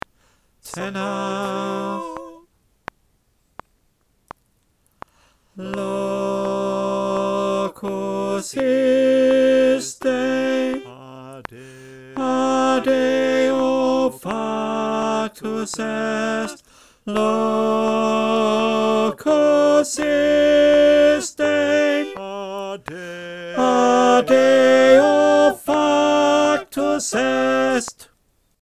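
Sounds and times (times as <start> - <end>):
tenor voice: 0.7 - 2.4, 5.6 - 28.0
choir singing: 0.7 - 2.5, 5.6 - 28.1.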